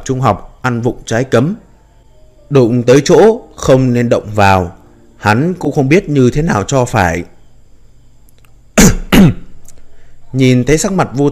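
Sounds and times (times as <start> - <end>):
speech: 0.0 - 1.6, 2.5 - 7.3, 9.2 - 9.4, 10.3 - 11.3
dry coughs: 8.8 - 9.6.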